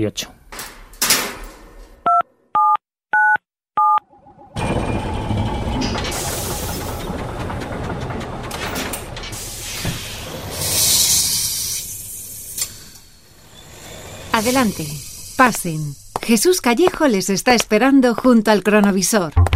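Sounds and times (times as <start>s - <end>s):
speech: 0.0s - 0.4s, 14.4s - 19.4s
keypad beeps: 2.1s - 4.0s
loud continuous rushing rumble: 4.1s - 12.4s.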